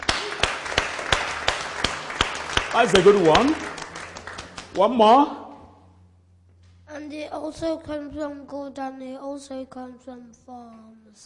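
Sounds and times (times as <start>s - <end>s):
audience clapping in steady unison rhythm: 0.0s - 5.4s
speech: 2.8s - 3.8s, 4.8s - 5.4s, 7.0s - 11.2s.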